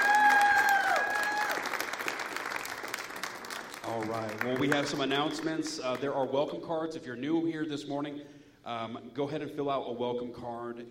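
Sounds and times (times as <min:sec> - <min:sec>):
church congregation applauding: 0:00.0 - 0:06.1
speech: 0:04.0 - 0:10.8.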